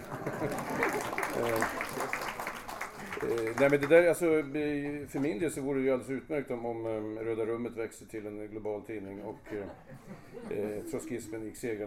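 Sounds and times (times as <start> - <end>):
laughter: 0.0 - 2.2, 9.0 - 11.5
group clapping: 0.0 - 4.0
speech: 1.4 - 2.2, 3.2 - 11.8.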